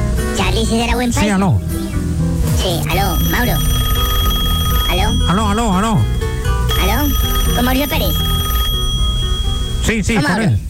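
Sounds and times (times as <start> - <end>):
steady musical background: 0.0 - 10.3
speech: 0.6 - 1.8, 2.6 - 3.8, 4.9 - 6.2, 6.8 - 8.3, 9.8 - 10.6
telephone ringing as a Medellín radio morning show calls a listener: 2.9 - 10.4.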